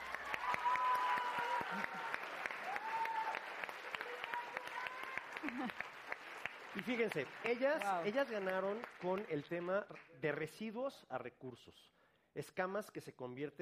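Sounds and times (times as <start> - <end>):
audience applause: 0.0 - 10.1
speech: 6.8 - 13.6.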